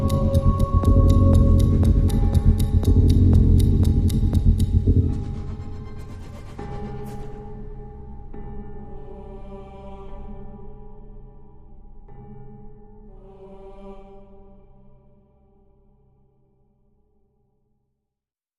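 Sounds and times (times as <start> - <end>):
dark ticking drone: 0.0 - 9.1.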